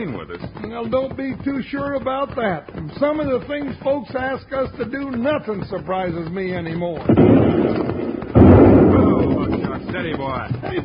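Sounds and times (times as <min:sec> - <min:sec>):
speech: 0:00.0 - 0:08.0, 0:09.4 - 0:10.8
bomb explosion: 0:07.1 - 0:10.0.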